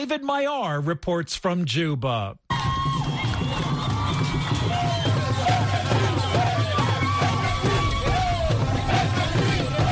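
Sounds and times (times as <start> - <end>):
speech: 0.0 - 3.7
fans beating drums at Juba International Airport: 2.5 - 9.8
crowd of fans singing at Juba International Airport: 4.7 - 9.8.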